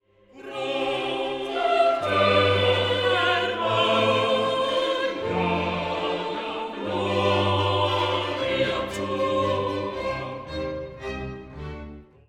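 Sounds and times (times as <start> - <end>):
choral music: 0.0 - 12.2.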